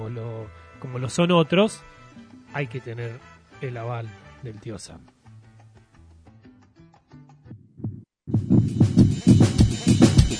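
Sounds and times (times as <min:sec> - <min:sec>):
speech: 0:00.1 - 0:01.9, 0:02.5 - 0:05.2
heartbeat sound effect: 0:07.5 - 0:10.3.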